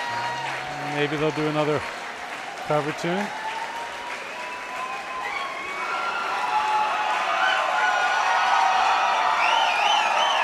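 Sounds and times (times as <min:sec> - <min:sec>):
concert crowd cheering: 0:00.0 - 0:10.4
speech: 0:01.0 - 0:02.0, 0:02.7 - 0:03.4.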